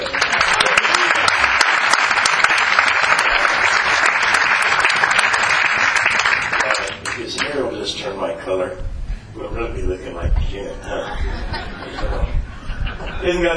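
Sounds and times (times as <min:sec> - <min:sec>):
crowd applauding: 0:00.0 - 0:07.6
speech: 0:08.5 - 0:09.0, 0:09.6 - 0:12.4, 0:13.0 - 0:13.5
laughter: 0:10.8 - 0:13.5.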